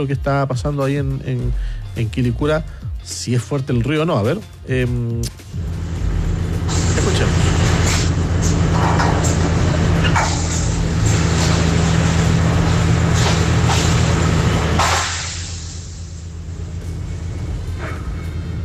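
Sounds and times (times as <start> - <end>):
speech: 0.0 - 5.8
construction work noise: 5.3 - 18.6.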